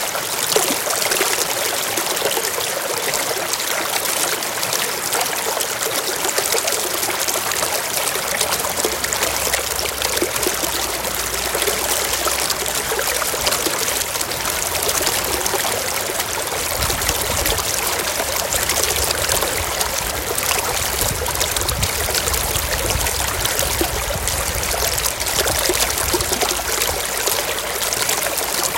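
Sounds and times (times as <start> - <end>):
running stream water at a pond: 0.0 - 28.7.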